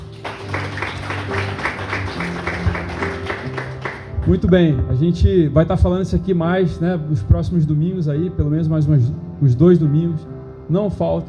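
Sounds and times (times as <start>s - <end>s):
audience clapping: 0.0s - 4.4s
sustained low keyboard chords: 0.0s - 11.2s
speech: 4.3s - 11.2s.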